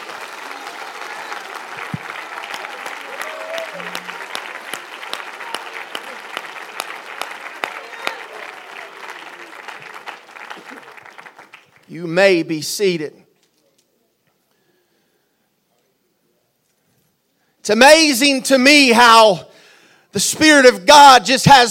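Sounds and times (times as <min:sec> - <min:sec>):
audience clapping hands: 0:00.0 - 0:12.2
speech: 0:11.9 - 0:13.2, 0:17.7 - 0:19.5, 0:20.1 - 0:21.6.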